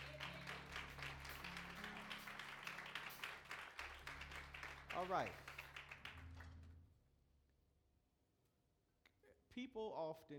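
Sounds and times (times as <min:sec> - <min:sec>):
audience clapping hands: 0:00.0 - 0:06.8
speech: 0:05.0 - 0:05.5, 0:09.6 - 0:10.3.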